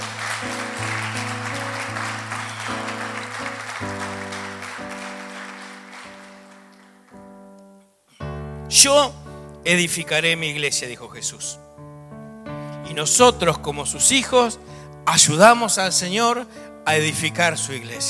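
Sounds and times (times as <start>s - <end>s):
audience applause: 0.0s - 7.3s
speech: 8.8s - 11.8s, 13.0s - 18.0s.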